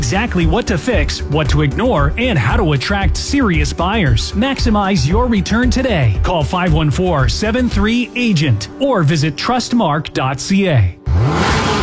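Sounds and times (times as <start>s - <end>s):
speech: 0.1s - 11.4s
car engine revving: 11.0s - 11.8s.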